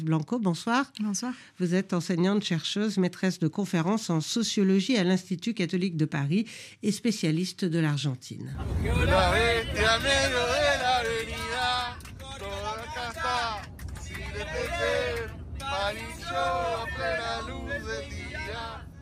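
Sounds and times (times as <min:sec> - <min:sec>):
speech: 0:00.0 - 0:11.3
airplane passengers applauding: 0:08.8 - 0:18.8.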